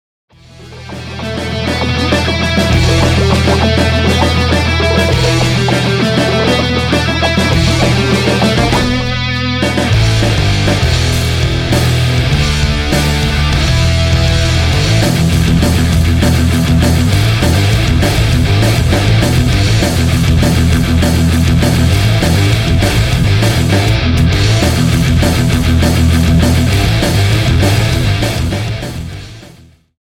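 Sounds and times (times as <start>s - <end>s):
fast music track: 0.4s - 29.8s.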